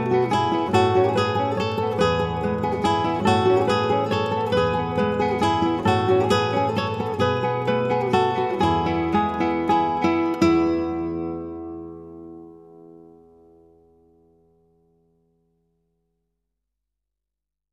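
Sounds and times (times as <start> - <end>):
acoustic instrumental praise music: 0.0 - 14.2.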